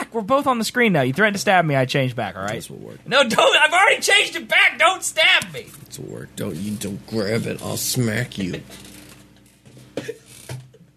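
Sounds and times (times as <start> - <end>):
speech: 0.2 - 8.9
chair squeaking and creaking: 8.4 - 10.9.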